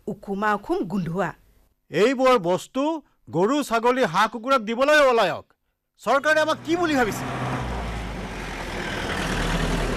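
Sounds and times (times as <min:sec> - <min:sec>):
speech: 0:00.1 - 0:07.4
road noise: 0:06.1 - 0:09.9
several vehicles arriving with engines rumbling: 0:06.4 - 0:09.9.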